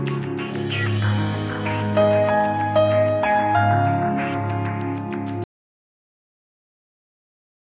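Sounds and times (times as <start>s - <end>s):
game over music loop at 95 BPM in 4/4: 0.0s - 5.4s.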